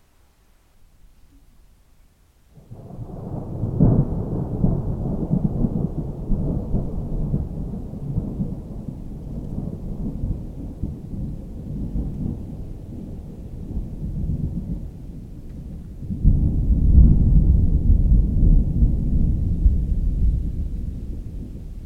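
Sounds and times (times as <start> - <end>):
thunder rumbling over a Dorset coomb on a summer evening: 2.6 - 21.8.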